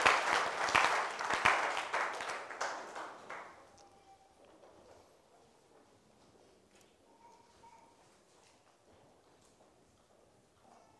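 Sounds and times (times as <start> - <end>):
audience clapping: 0.0 - 3.8.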